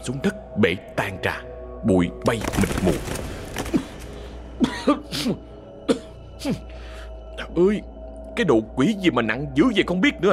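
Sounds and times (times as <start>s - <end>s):
speech: 0.0s - 3.4s, 4.6s - 6.7s, 7.6s - 10.3s
man coughing from dust: 4.6s - 6.7s.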